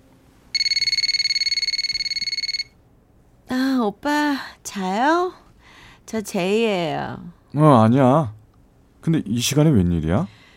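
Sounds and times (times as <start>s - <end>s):
telephone ringing: 0.5s - 2.8s
speech: 3.8s - 5.4s, 6.1s - 8.4s, 9.0s - 10.4s.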